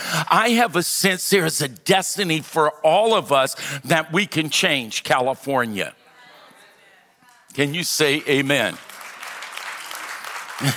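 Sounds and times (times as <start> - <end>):
speech: 0.1 - 6.0, 7.6 - 8.9, 10.6 - 10.7
audience golf clap: 8.0 - 10.7.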